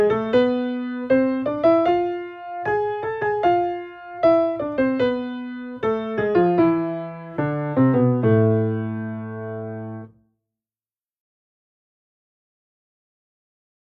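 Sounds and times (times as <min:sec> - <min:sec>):
piano exercises with varied rhythms: 0:00.0 - 0:10.1.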